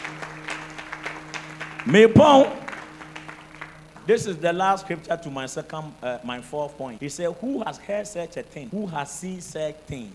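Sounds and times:
audience clapping: 0.0 - 4.2
speech: 1.8 - 2.6, 4.1 - 10.1.

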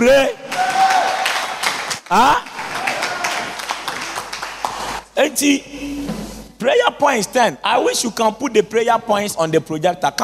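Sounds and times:
audience clapping: 0.4 - 5.2
speech: 2.1 - 2.5, 5.4 - 5.7, 6.6 - 10.2.

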